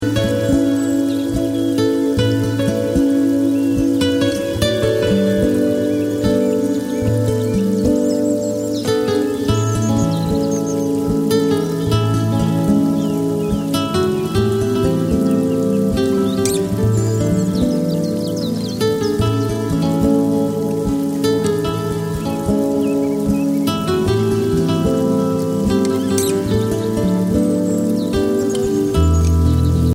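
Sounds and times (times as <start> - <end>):
river lullaby music: 0.0 - 29.9.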